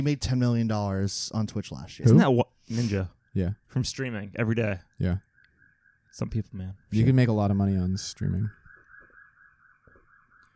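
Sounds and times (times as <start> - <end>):
speech: 0.0 - 5.3, 6.1 - 8.6
electronic siren wailing: 5.3 - 10.5.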